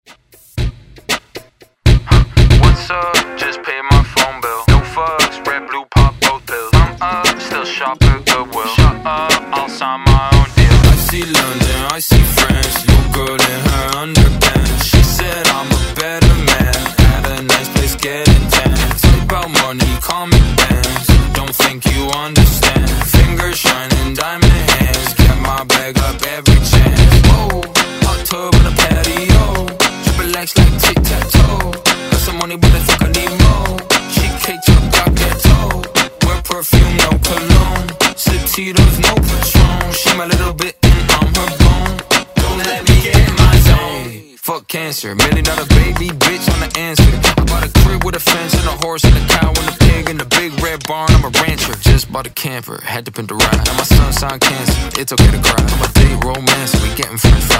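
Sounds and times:
pop drum loop: 0:00.1 - 0:44.1, 0:45.2 - 0:52.3, 0:53.4 - 0:57.5.

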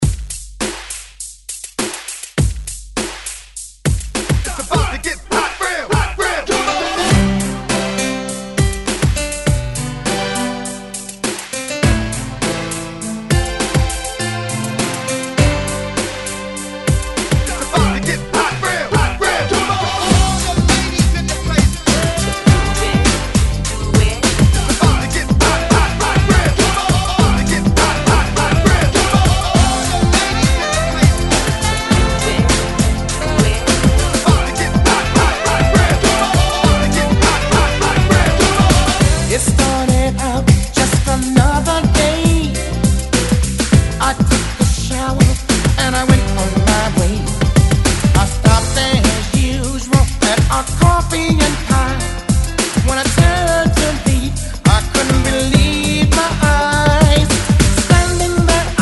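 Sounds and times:
90s hype drum beat: 0:00.0 - 0:58.8.

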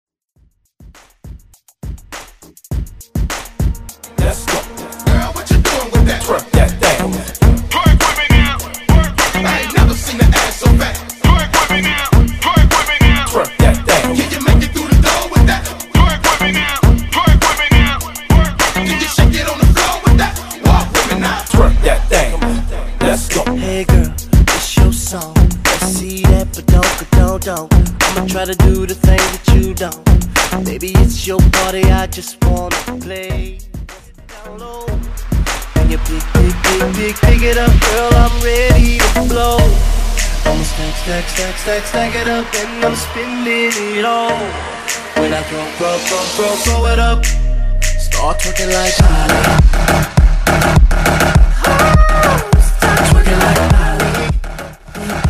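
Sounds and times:
bootleg mashup music: 0:00.8 - 0:55.2.

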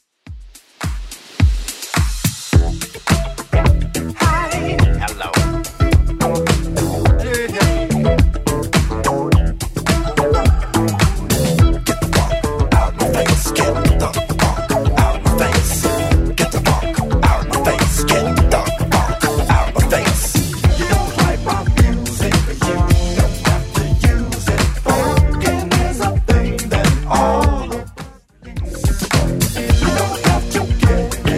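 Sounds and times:
80s club edit: 0:00.5 - 0:31.3.

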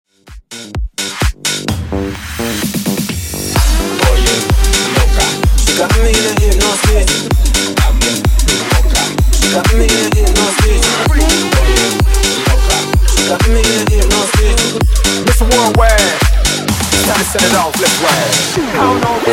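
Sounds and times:
funk bootleg remix at 128 BPM: 0:00.2 - 0:19.3.

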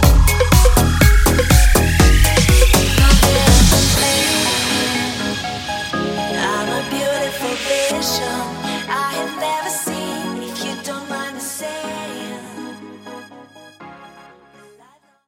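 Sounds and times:
club house beat: 0:00.0 - 0:10.6.

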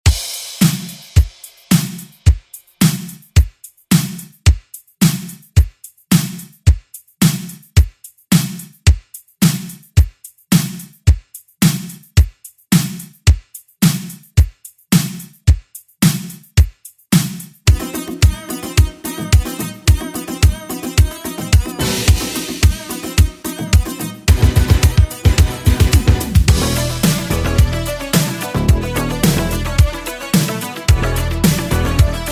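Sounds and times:
80s drum beat: 0:00.0 - 0:32.3.

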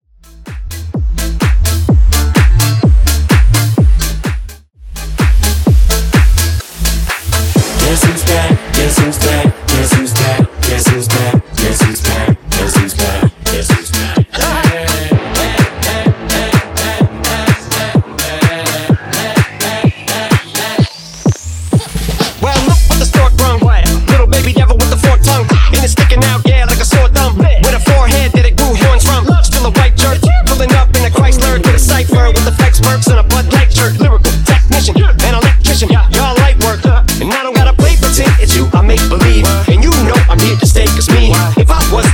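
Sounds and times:
remix music: 0:00.1 - 0:42.1.

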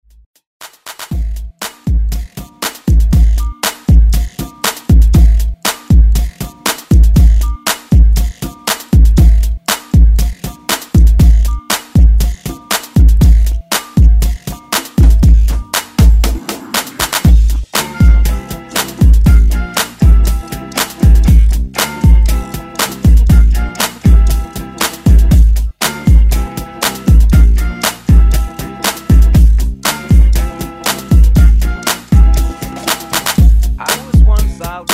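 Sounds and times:
1970s style extended drum groove: 0:00.6 - 0:34.9.

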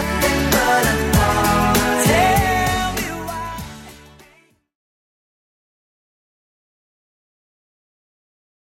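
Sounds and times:
90s-style music at 98 bpm: 0:00.0 - 0:04.6.

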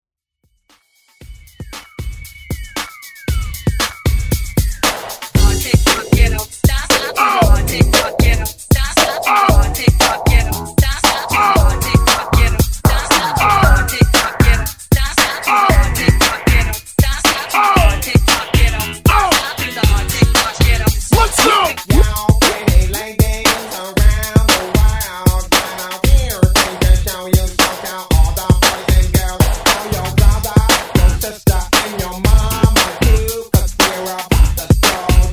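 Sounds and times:
1980s hype music: 0:01.2 - 0:35.3.

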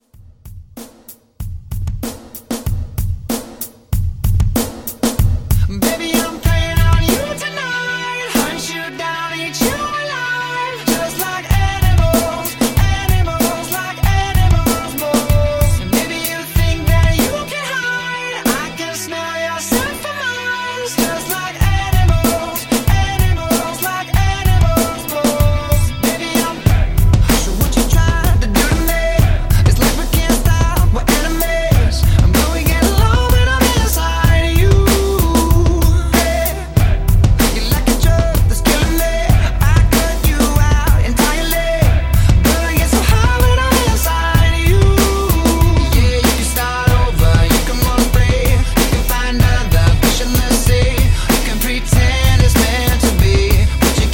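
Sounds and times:
pop drum loop: 0:00.0 - 0:19.0, 0:19.6 - 0:54.1.

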